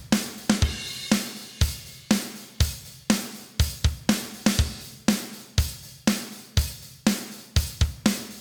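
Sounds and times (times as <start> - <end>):
drums at 121 bpm: 0.0 - 8.4.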